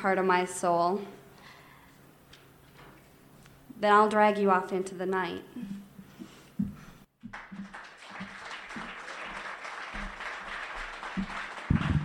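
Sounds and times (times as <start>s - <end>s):
speech: 0.0s - 1.2s, 3.8s - 5.8s
audience applause: 7.3s - 12.0s.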